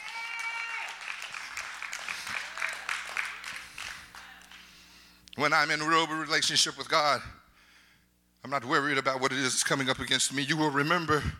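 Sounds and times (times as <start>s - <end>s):
audience applause: 0.0s - 4.7s
speech: 5.4s - 7.4s, 8.4s - 11.3s.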